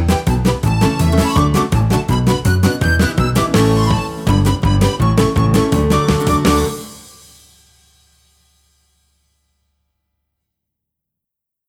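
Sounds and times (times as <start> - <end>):
fast surprise instrumental music: 0.0 - 8.2.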